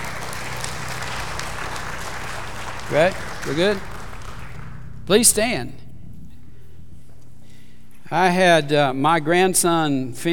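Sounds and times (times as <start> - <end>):
audience applauding: 0.0 - 4.9
speech: 2.9 - 3.9, 5.1 - 5.8, 8.1 - 10.3.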